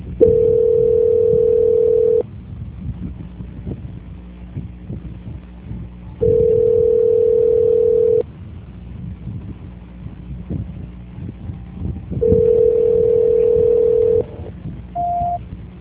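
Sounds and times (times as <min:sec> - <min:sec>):
telephone tones while a call is being transferred: 0:00.2 - 0:02.2, 0:06.2 - 0:08.2, 0:12.2 - 0:15.4
brief higher beep: 0:15.0 - 0:15.4.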